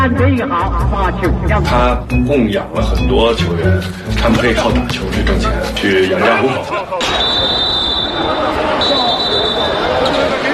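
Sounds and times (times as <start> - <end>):
crowd roar and chatter: 0.0 - 10.5
speech: 0.1 - 7.6
audience member blowing a whistle: 7.0 - 9.9.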